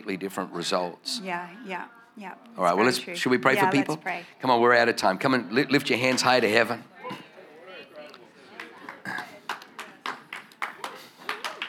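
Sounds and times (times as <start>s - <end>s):
speech: 0.1s - 7.2s
golf clap: 8.6s - 11.6s.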